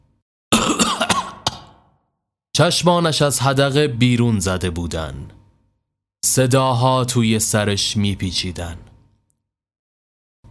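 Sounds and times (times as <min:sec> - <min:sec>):
coughing fit: 0:00.5 - 0:02.0
speech: 0:02.6 - 0:05.4, 0:06.2 - 0:08.8.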